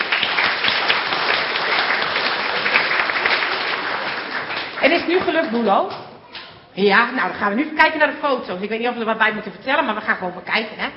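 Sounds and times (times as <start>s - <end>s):
audience applause: 0.0s - 5.3s
speech: 5.0s - 6.0s, 6.8s - 10.9s.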